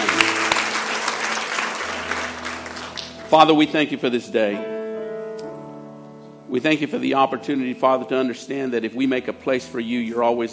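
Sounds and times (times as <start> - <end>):
audience clapping: 0.0 - 3.9
speech: 3.3 - 4.7, 6.5 - 10.5.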